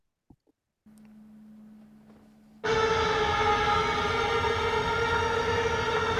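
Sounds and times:
dissonant guitar noise opening a metal song: 0:01.2 - 0:06.1.

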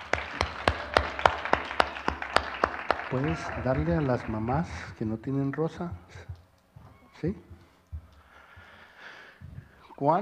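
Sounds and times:
church congregation clapping in unison: 0:00.0 - 0:05.8
speech: 0:03.1 - 0:06.3, 0:07.2 - 0:07.5, 0:10.0 - 0:10.1.

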